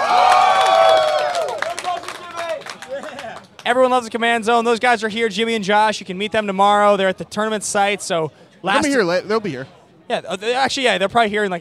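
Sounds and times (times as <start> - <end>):
audience round of applause and cheering: 0.0 - 3.7
speech: 3.7 - 11.5.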